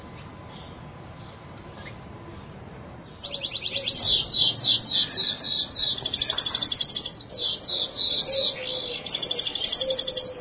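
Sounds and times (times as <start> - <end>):
bird chirping and trilling: 3.1 - 10.3.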